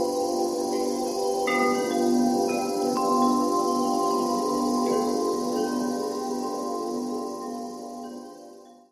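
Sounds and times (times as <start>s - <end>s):
wind chime: 0.7s - 8.9s.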